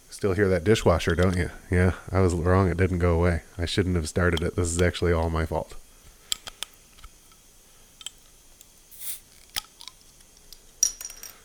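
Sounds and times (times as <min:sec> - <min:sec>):
speech: 0:00.2 - 0:05.8
bottle opener struggling to remove a bottle cap: 0:06.3 - 0:10.2.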